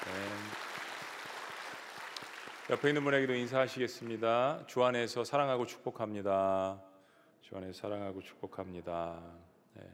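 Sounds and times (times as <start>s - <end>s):
audience applause: 0.0s - 4.2s
speech: 2.7s - 9.9s.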